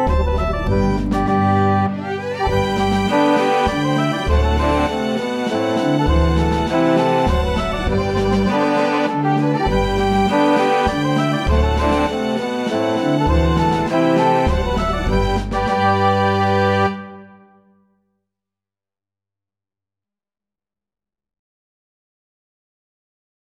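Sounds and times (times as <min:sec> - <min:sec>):
waltz music: 0:00.0 - 0:17.2.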